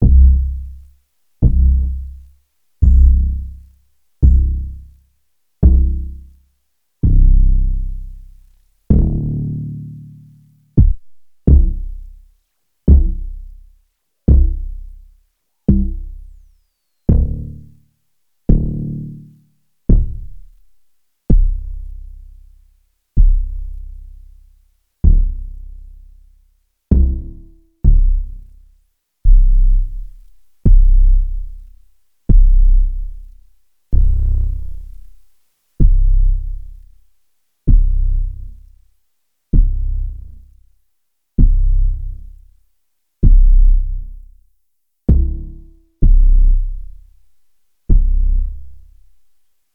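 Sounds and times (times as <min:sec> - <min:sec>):
bass: 0:00.0 - 0:49.7.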